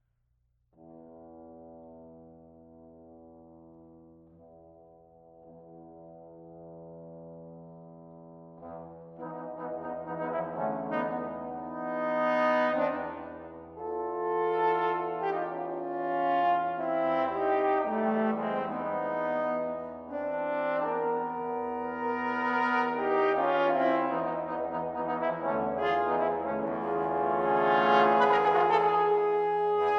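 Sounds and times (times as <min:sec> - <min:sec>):
double concerto for trombones: 0:08.5 - 0:29.9.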